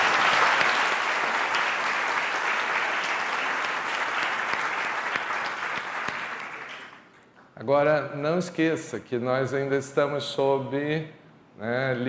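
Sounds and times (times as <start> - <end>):
audience applauding: 0.0 - 7.1
speech: 7.7 - 12.0.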